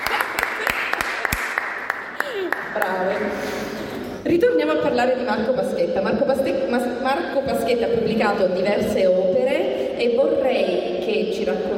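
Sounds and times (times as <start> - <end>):
light applause at a literary event: 0.0 - 3.4
speech: 4.2 - 11.7.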